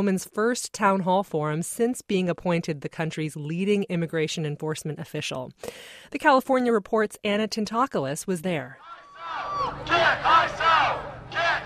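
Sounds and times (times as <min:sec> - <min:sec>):
speech: 0:00.0 - 0:11.0
angry protesters chanting outside a town hall forum: 0:08.8 - 0:11.6.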